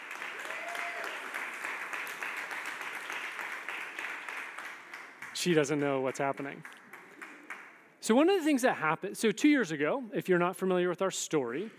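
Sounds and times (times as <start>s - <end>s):
audience applause: 0.0s - 7.7s
speech: 5.4s - 6.8s, 8.0s - 11.7s.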